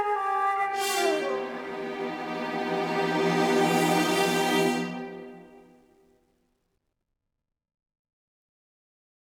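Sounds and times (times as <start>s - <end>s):
musical sting at 108 bpm in four-four: 0.0s - 5.6s.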